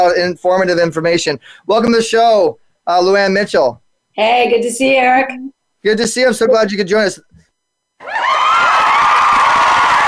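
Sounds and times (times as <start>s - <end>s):
speech: 0.0s - 7.4s
studio audience cheering, shouting and whooping: 8.0s - 10.0s.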